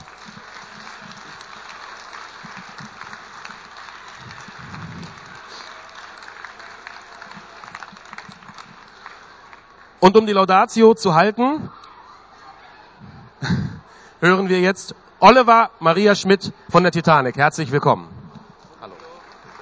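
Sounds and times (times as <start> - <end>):
applause: 0.0 - 10.0, 18.4 - 19.5
speech: 10.0 - 11.8, 14.2 - 18.2.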